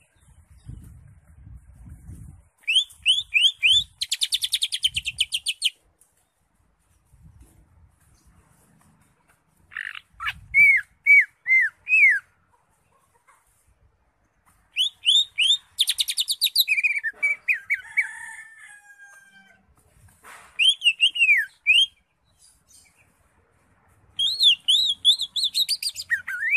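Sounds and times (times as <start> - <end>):
Greater Green Leafbird song: 2.6 - 5.8, 9.8 - 12.3, 14.7 - 17.8, 20.6 - 22.0, 24.2 - 26.5.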